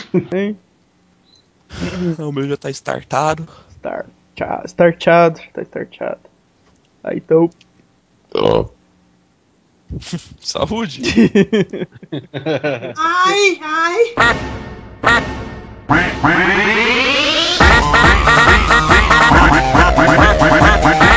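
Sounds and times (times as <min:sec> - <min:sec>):
speech: 0:00.1 - 0:00.7, 0:01.7 - 0:06.3, 0:07.0 - 0:07.7, 0:08.3 - 0:08.8, 0:09.9 - 0:15.3, 0:15.9 - 0:17.2
laughter: 0:10.9 - 0:13.0
duck quacking: 0:15.0 - 0:15.3, 0:15.9 - 0:16.8, 0:17.5 - 0:21.1.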